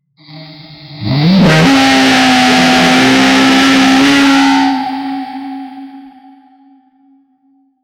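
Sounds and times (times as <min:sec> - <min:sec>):
guttural yeti roar: 0:00.2 - 0:06.0.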